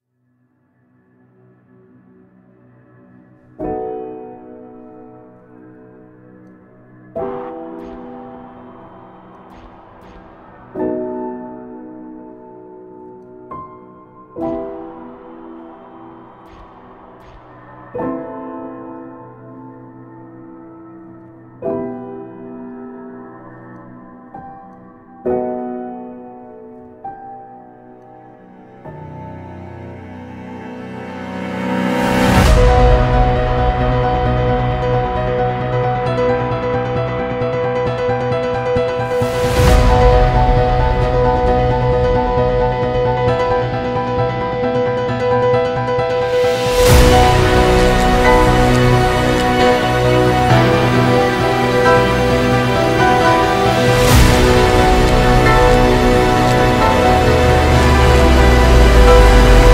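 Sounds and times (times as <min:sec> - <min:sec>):
cinematic piano cover: 0:00.5 - 0:59.7.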